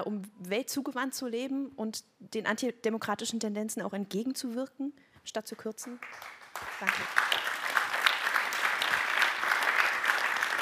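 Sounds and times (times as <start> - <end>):
speech: 0.0 - 7.4
audience applause: 5.9 - 10.5.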